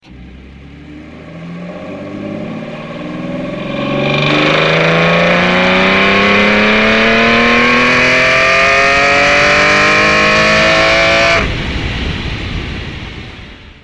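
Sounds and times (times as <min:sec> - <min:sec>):
Ferrari Enzo engine: 0:00.0 - 0:13.5.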